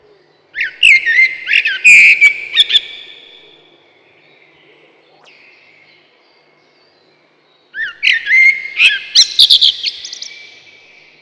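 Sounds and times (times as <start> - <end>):
common blackbird singing mellow fluted whistled phrases: 0.6 - 3.4, 7.8 - 10.7.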